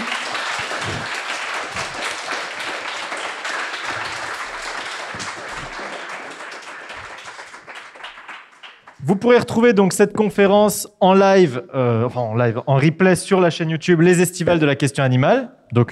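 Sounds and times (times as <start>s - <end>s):
audience applause after conference talk: 0.0s - 9.0s
speech: 9.1s - 15.9s.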